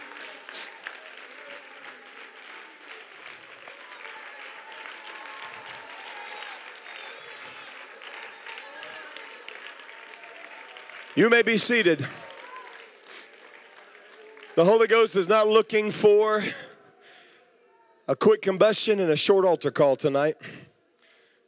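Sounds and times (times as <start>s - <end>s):
audience clapping hands: 0.0s - 15.9s
speech: 11.2s - 12.2s, 14.6s - 16.7s, 18.1s - 20.6s.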